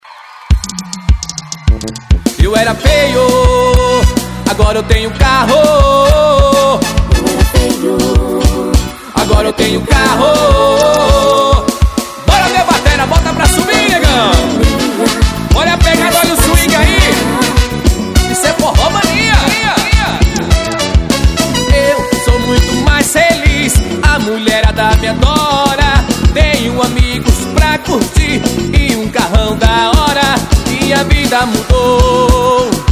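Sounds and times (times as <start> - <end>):
forró music: 0.5 - 32.8.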